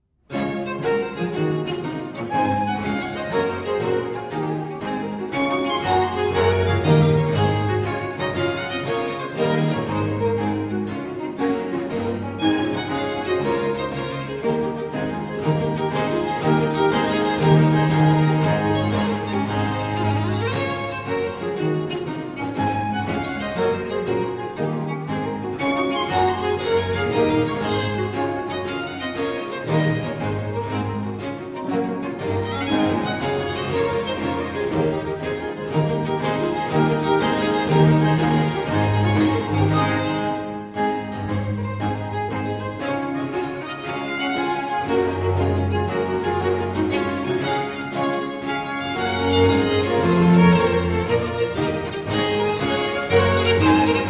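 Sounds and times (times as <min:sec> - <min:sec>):
gigue for three violins and basso continuo: 0:00.3 - 0:54.0.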